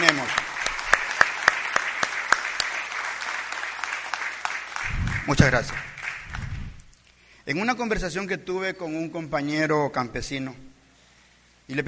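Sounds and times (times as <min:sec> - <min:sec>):
audience applause: 0:00.0 - 0:06.8
speech: 0:05.3 - 0:05.9, 0:07.5 - 0:10.6, 0:11.7 - 0:11.8.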